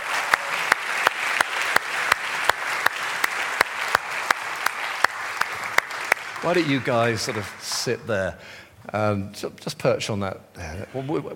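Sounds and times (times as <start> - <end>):
audience round of applause: 0.0 - 8.2
speech: 6.4 - 11.3.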